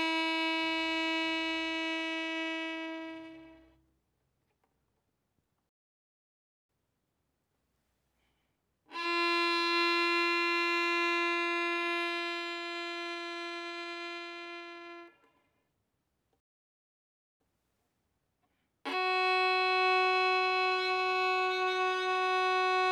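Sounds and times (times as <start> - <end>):
violin bowed fortissimo on the D string: 0.0 - 3.7, 8.9 - 15.2, 18.9 - 22.8.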